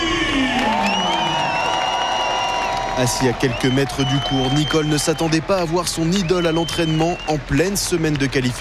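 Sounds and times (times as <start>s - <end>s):
tennis crowd roaring in the Philippe Châtrier stands: 0.2s - 3.4s
speech: 3.0s - 8.5s.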